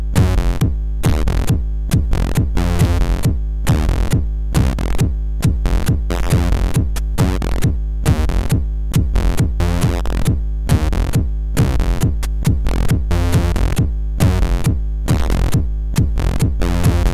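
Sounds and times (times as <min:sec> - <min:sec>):
gabber music on MOS6581R4 sound chip: 0:00.2 - 0:17.1.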